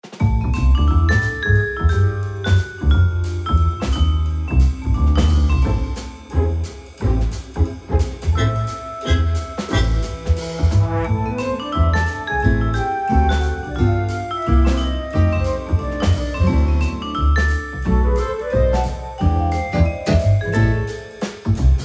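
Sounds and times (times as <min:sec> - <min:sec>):
blues music: 0:00.2 - 0:21.8.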